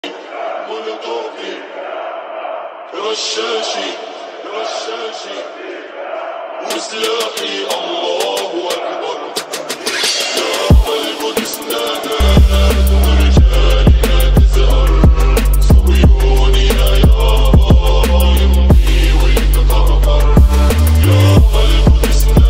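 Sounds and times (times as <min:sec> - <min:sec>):
trap remix: 0:06.5 - 0:22.4.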